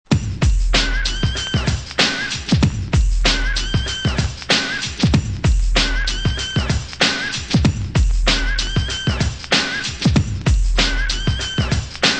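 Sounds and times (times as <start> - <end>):
drum loops: 0.1 - 12.1.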